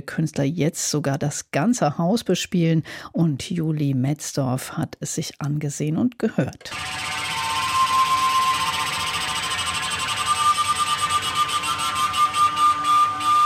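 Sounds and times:
speech: 0.0 - 7.4
sound installation of copper pipe flutes with airy whistling tones: 6.7 - 13.4.

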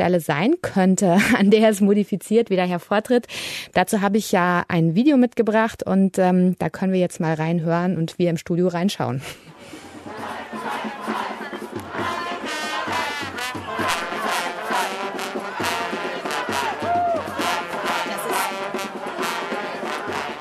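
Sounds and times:
speech: 0.0 - 9.5
activists shouting at a house occupation in East New York: 9.5 - 20.3.

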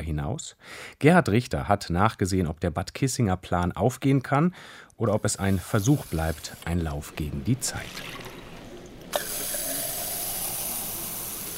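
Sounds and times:
speech: 0.0 - 8.3
healing spa water pouring from a copper tap into porcelain cups: 5.1 - 11.5.

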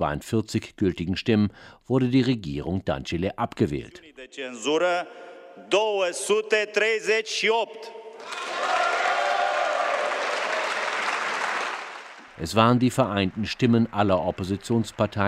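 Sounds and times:
speech: 0.0 - 8.6, 12.4 - 15.2
opposition members of parliament cheering: 8.2 - 12.3.

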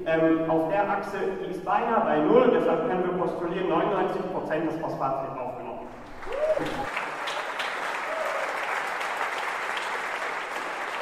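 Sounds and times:
speech: 0.0 - 5.6
audience applause: 5.9 - 11.0.

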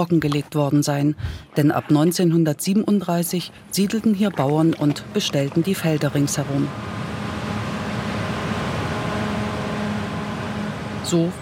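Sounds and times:
speech: 0.0 - 7.0, 11.1 - 11.4
combine harvesters in a wheat field: 3.6 - 11.4
tractors working a wheat field: 3.9 - 11.4.

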